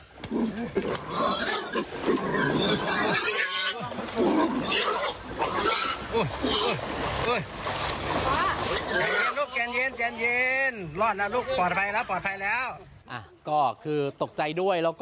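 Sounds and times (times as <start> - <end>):
frightened pigs squealing during flood rescue: 0.4 - 6.9, 8.3 - 10.2
speech: 0.6 - 3.3, 6.2 - 14.9.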